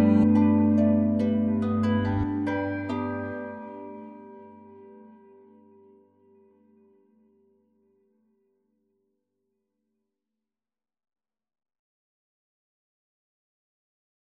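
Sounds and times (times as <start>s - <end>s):
strings: 0.0s - 5.2s
bells: 0.0s - 6.2s.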